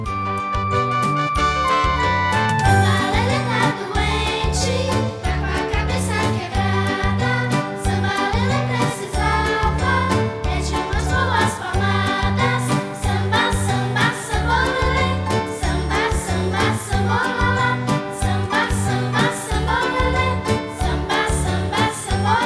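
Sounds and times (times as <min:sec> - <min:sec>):
samba song: 0:00.0 - 0:22.4.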